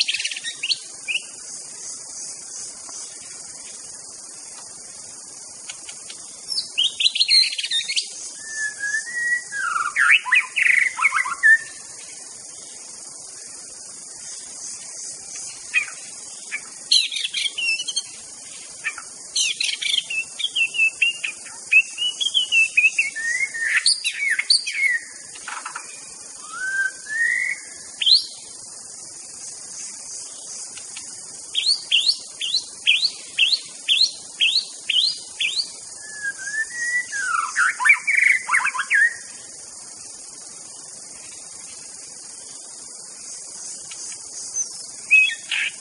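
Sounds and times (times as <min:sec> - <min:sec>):
high insect chorus: 0:00.0 - 0:45.7
white-rumped shama whistled song: 0:08.4 - 0:10.2, 0:36.0 - 0:38.0.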